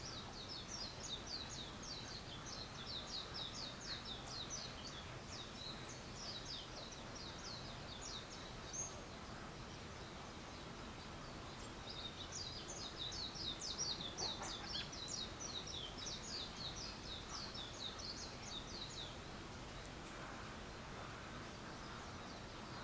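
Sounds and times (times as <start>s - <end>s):
bird calls with high chirps: 0.0s - 22.8s
constant background hiss: 0.0s - 22.8s.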